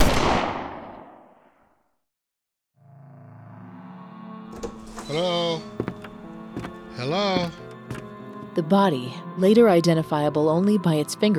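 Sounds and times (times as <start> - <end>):
20-gauge shotgun blast: 0.0 - 1.3
speech: 4.6 - 5.7, 7.0 - 7.6, 8.6 - 11.3.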